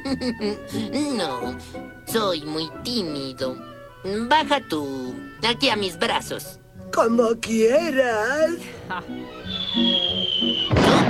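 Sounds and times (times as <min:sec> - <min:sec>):
soft cartoon music: 0:00.0 - 0:10.8
speech: 0:00.1 - 0:11.0
high whistle of Witch Hazel falling in a Bugs Bunny cartoon: 0:09.3 - 0:11.0
loud crash: 0:10.6 - 0:11.0.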